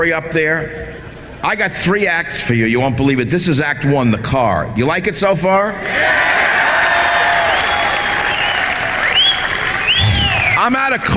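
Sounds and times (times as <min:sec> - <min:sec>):
speech: 0:00.0 - 0:06.4, 0:10.6 - 0:11.1
cheering voices: 0:05.8 - 0:10.7
audience applause: 0:06.2 - 0:10.7
sharp rising whistle: 0:07.4 - 0:10.7.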